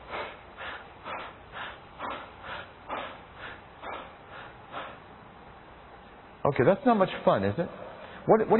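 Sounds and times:
rapid shallow upper-chest breathing: 0.0s - 6.1s, 7.7s - 8.3s
speech: 6.5s - 8.5s.

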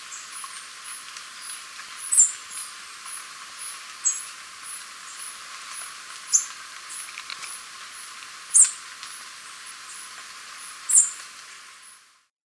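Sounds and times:
soft steady hiss: 0.0s - 12.3s
Capped Conebill high thin calls: 6.3s - 7.6s, 8.5s - 8.8s, 10.9s - 11.2s.

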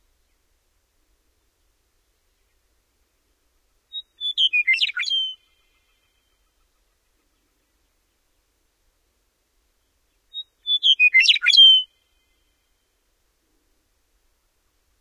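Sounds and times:
Western meadowlark singing in North America: 3.9s - 6.8s, 10.1s - 12.5s.

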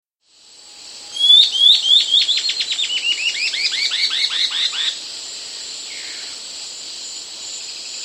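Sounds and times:
White-cheeked antbird song: 1.1s - 5.0s.

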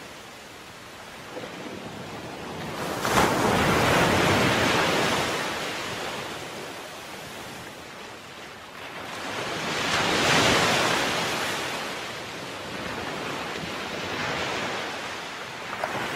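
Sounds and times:
ocean waves: 0.0s - 16.1s.

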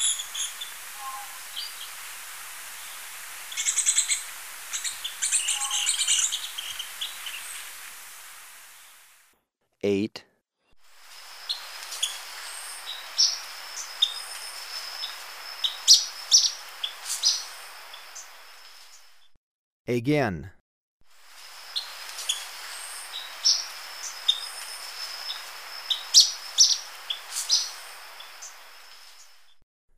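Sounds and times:
lower chips from other birds: 0.0s - 9.1s, 11.0s - 19.2s, 21.3s - 29.6s
ornate flycatcher sharp high calls: 0.0s - 9.1s, 11.0s - 18.9s, 21.3s - 29.4s
faint insect hum: 0.0s - 9.3s, 10.8s - 19.3s, 21.1s - 29.6s
speech: 9.8s - 10.3s, 19.9s - 20.6s.

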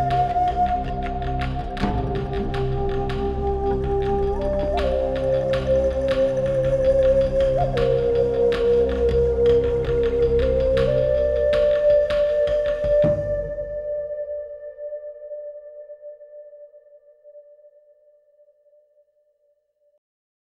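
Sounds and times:
native flute: 0.0s - 18.1s.

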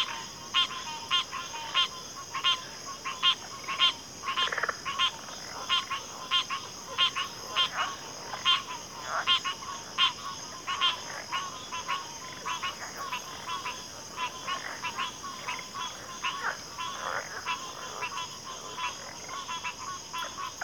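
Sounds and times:
chorus of crickets in a backwater: 0.0s - 20.6s.

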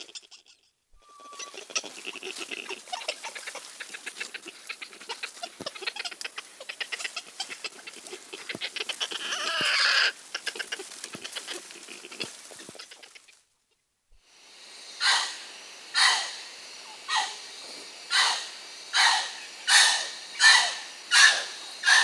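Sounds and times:
muriqui chirps: 0.0s - 13.4s, 18.1s - 22.0s.

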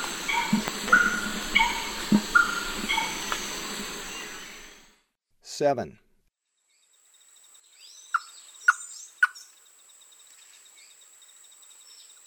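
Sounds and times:
thrush-like wren in the Eastern Lowlands of South America: 0.0s - 5.0s.

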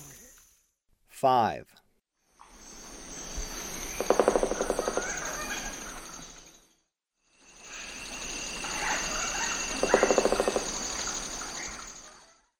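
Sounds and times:
lineated woodpecker: 3.7s - 6.4s, 7.7s - 12.4s.

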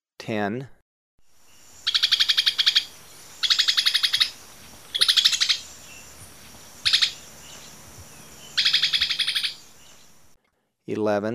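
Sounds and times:
low background hum: 1.5s - 10.4s
Immaculate antbird making rasping pulsed rattles: 1.8s - 7.2s, 8.6s - 9.6s.

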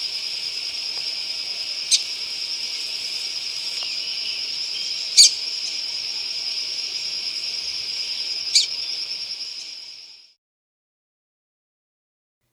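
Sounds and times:
Yellow-bellied Seedeater calling in Ecuador: 0.0s - 9.7s.

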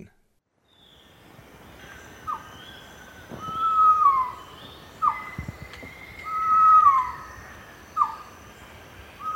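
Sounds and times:
pavonine quetzal whistling: 2.2s - 8.3s, 9.2s - 9.3s.

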